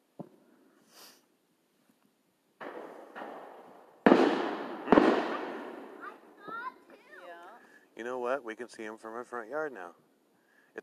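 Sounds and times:
fireworks hiss: 0:00.8 - 0:01.3
Fourth of July fireworks bang: 0:02.6 - 0:06.6
Fourth of July fireworks thump: 0:02.6 - 0:07.0
Fourth of July fireworks crackling: 0:02.6 - 0:08.2
speech: 0:08.0 - 0:10.0.

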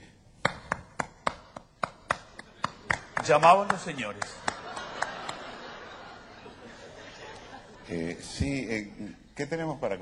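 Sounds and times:
dancers clapping hands to mark rhythm: 0:00.4 - 0:05.6
laughter: 0:02.4 - 0:08.4
speech: 0:03.2 - 0:04.4, 0:07.9 - 0:10.0.

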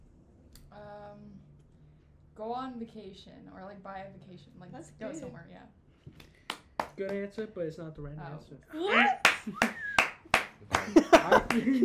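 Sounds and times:
speech: 0:02.4 - 0:06.3, 0:07.0 - 0:09.8, 0:10.8 - 0:11.8
hand claps: 0:06.1 - 0:07.5, 0:09.2 - 0:11.8
excited voices: 0:08.7 - 0:10.0
laughter: 0:10.8 - 0:11.8.

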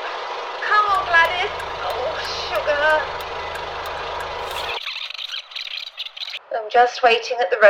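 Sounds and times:
car engine straining: 0:00.9 - 0:04.8
speech: 0:06.8 - 0:07.6.

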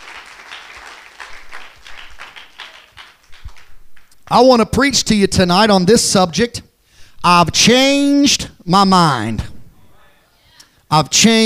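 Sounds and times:
audience clapping: 0:00.0 - 0:04.4
speech: 0:04.3 - 0:09.5, 0:10.9 - 0:11.4.

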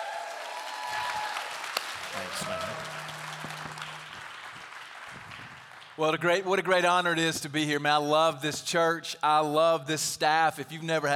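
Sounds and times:
church congregation clapping: 0:00.0 - 0:06.7
speech: 0:02.1 - 0:03.6, 0:06.0 - 0:11.1.

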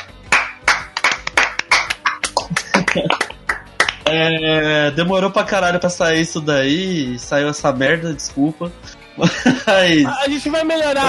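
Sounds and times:
round of applause, hand clapping: 0:00.0 - 0:04.2
laughter: 0:02.0 - 0:03.4, 0:09.2 - 0:10.3
speech: 0:04.1 - 0:11.0.

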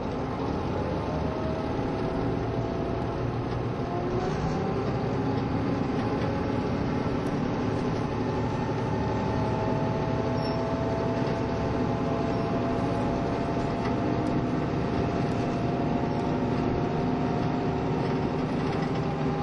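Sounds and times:
KiHa 72 series Yufuin no Mori train rumbling: 0:00.0 - 0:19.4.

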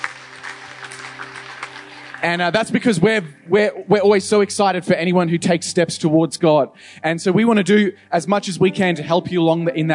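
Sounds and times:
audience applause: 0:00.0 - 0:02.8
speech: 0:02.2 - 0:09.9.

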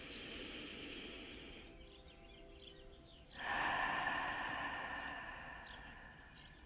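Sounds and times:
rushing breathwork exhale out through the mouth: 0:00.0 - 0:01.7, 0:03.4 - 0:06.6
soft breathwork inhale through the nose: 0:00.0 - 0:02.2, 0:03.3 - 0:06.6.

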